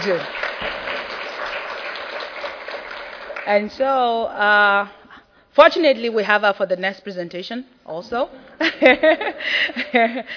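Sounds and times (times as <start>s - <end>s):
speech: 0.0s - 0.8s, 3.4s - 5.0s, 5.6s - 10.3s
audience applause for a presenter after her talk: 0.0s - 3.7s.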